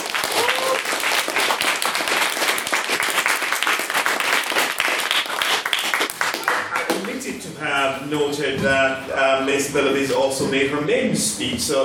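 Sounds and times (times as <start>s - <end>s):
audience applause: 0.0s - 7.2s
speech: 8.1s - 11.8s.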